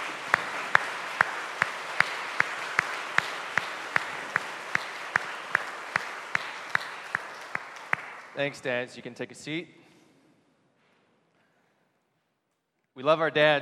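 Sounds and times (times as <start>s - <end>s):
audience applause: 0.0s - 8.6s
speech: 8.4s - 9.8s, 13.0s - 13.6s.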